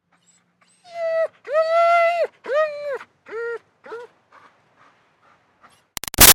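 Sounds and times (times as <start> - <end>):
German Shepherd dog whining pleadingly: 0.2 - 4.1.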